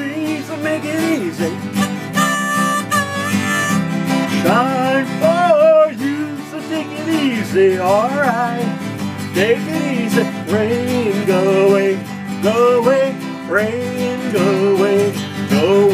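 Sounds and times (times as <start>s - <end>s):
guitar: 0.0s - 15.9s
harmonica: 1.5s - 4.6s.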